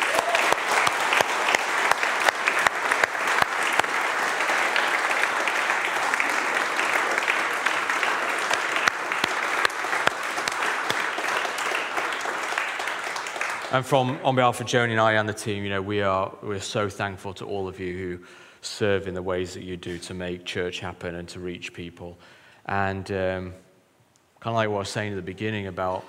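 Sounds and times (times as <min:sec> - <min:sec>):
audience round of applause: 0:00.0 - 0:14.2
speech: 0:13.8 - 0:23.6, 0:24.4 - 0:26.0.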